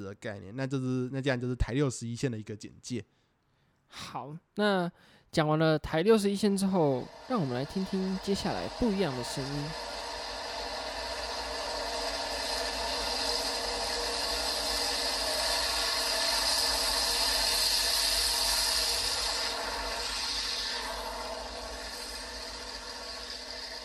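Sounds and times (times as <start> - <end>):
speech: 0.0 - 3.2, 3.9 - 9.9
train on Taichung Port railway line: 6.3 - 23.8.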